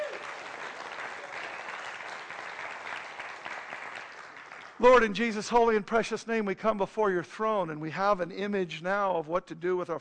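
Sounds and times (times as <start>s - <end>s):
audience applause: 0.0s - 4.8s
speech: 4.8s - 10.0s.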